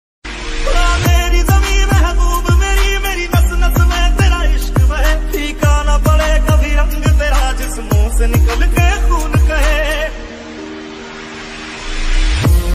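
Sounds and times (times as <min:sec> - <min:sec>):
hard army ringtone background music: 0:00.3 - 0:12.7.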